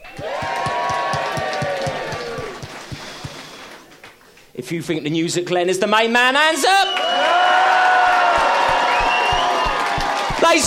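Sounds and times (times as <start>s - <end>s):
audience screaming and shouting: 0.0s - 3.5s, 7.1s - 10.6s
speech: 4.6s - 7.8s, 10.5s - 10.6s.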